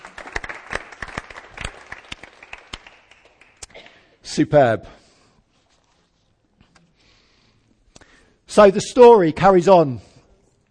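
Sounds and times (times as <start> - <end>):
audience clapping: 0.0 - 3.8
speech: 4.4 - 5.0, 8.6 - 10.1.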